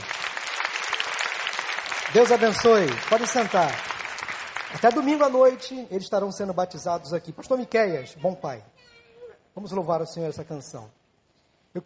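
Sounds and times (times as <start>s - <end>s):
audience applause: 0.0s - 5.6s
speech: 2.1s - 3.9s, 4.7s - 8.8s, 9.6s - 11.0s.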